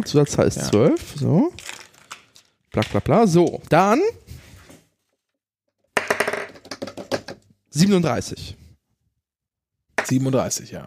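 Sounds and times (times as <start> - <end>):
speech: 0.0 - 1.7, 2.8 - 4.3, 7.8 - 8.6, 10.0 - 10.8
new dice rolled across a hard surface for a EuroJackpot number prediction: 6.0 - 7.4.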